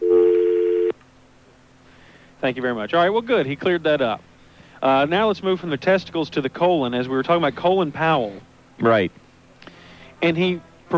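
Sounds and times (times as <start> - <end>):
telephone line tone: 0.0 - 1.0
faint low hum: 0.0 - 10.9
speech: 2.4 - 9.2, 10.2 - 10.9.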